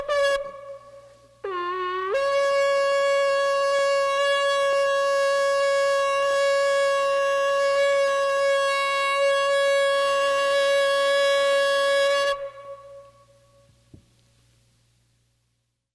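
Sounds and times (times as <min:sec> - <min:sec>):
shofar blowing: 0:00.0 - 0:13.7.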